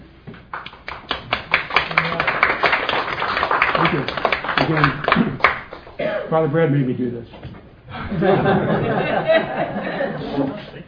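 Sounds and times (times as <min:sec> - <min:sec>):
audience applause: 0:00.6 - 0:06.0
speech: 0:04.7 - 0:05.5, 0:06.3 - 0:07.4, 0:08.1 - 0:10.8
laughter: 0:07.9 - 0:10.8.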